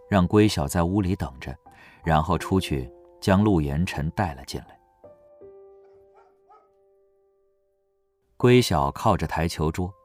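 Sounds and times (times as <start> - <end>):
speech: 0.1 - 4.8, 8.4 - 10.0
large chained wolfdog barking at an unfamiliar man: 5.8 - 6.8.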